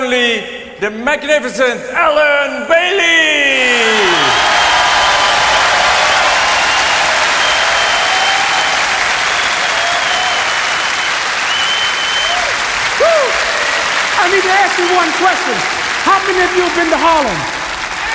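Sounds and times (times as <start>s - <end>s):
speech: 0.0s - 3.3s, 14.7s - 17.6s
audience applause: 3.7s - 18.1s.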